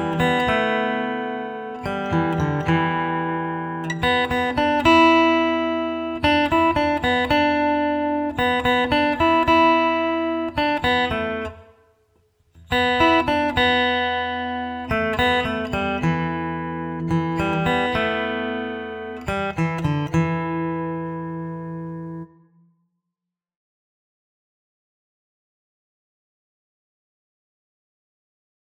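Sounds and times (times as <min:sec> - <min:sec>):
guitar melody: 0:00.0 - 0:11.9, 0:12.6 - 0:22.7.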